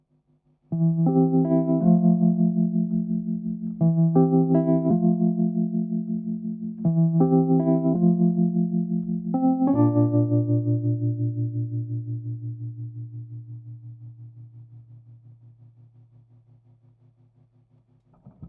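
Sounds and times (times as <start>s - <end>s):
keyboard playing: 0.7s - 14.1s.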